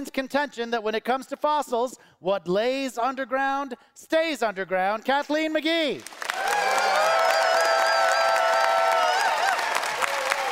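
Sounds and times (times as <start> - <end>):
speech: 0.0 - 6.6
audience applause: 6.0 - 10.5.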